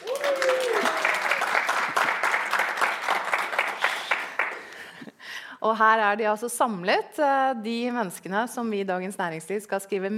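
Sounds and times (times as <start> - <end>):
live audience applauding: 0.0 - 5.0
speech: 5.6 - 10.1.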